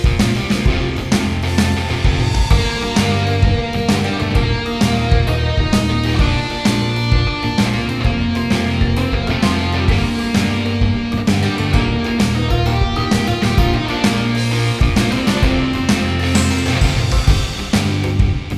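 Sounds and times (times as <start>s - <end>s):
boss victory music loop: 0.1s - 18.4s.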